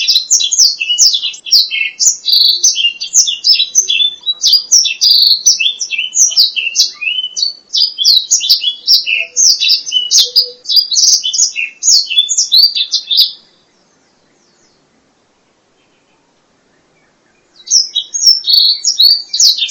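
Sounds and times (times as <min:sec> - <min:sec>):
black-throated laughingthrush whistled song: 0:00.0 - 0:13.5, 0:17.3 - 0:19.6.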